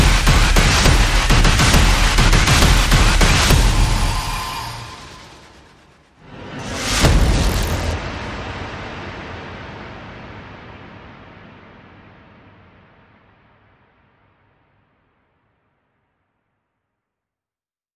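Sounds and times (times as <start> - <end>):
percussion: 0.0 - 8.3
sound effects: 0.0 - 9.2.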